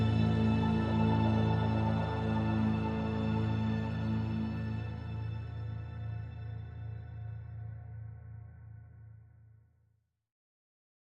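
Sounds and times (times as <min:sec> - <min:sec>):
synth pads: 0:00.0 - 0:08.8.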